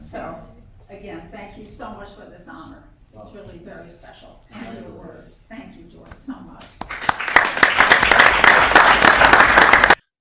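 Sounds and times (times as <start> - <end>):
speech: 1.0 - 7.0
small group applauding: 6.7 - 10.0.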